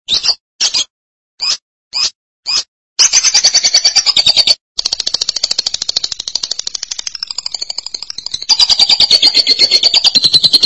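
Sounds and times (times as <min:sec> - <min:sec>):
lovebird chatter: 0:03.0 - 0:10.6.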